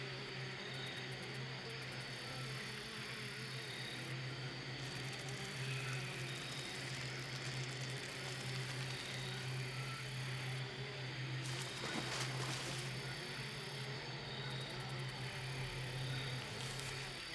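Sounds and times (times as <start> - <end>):
swamp ambience: 0.2 - 17.3.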